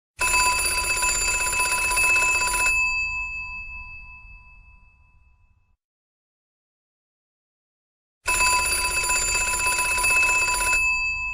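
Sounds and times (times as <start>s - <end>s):
phone ringtone: 0.2s - 5.6s, 8.3s - 11.3s.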